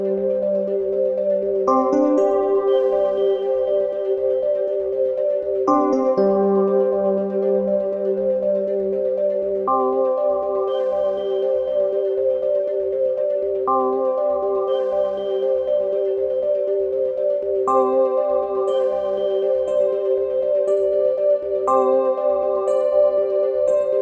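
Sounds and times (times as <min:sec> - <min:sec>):
floating healing music: 0:00.0 - 0:24.0.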